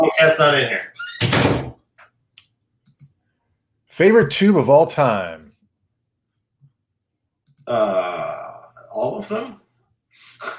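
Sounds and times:
speech: 0.1 - 1.7, 4.0 - 5.4, 7.7 - 8.2, 9.0 - 9.6
door closing: 0.8 - 1.8.

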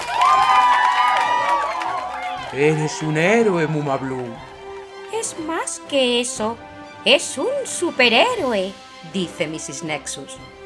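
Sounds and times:
crowd cheering and applauding: 0.0 - 6.4
speech: 2.5 - 4.5, 5.2 - 10.6.

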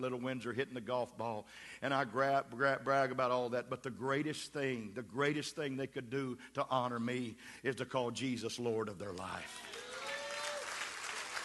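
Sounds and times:
speech: 0.0 - 9.8
audience clapping: 9.1 - 11.4.

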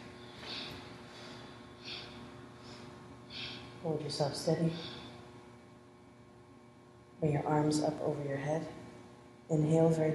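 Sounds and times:
deep inhales during a kundalini-style breathing exercise: 0.1 - 3.8
speech: 3.8 - 5.0, 7.2 - 8.8, 9.5 - 10.1.

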